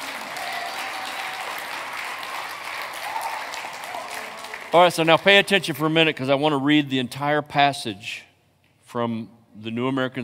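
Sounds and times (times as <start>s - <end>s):
audience clapping: 0.0s - 6.1s
speech: 4.7s - 8.3s, 8.9s - 10.2s.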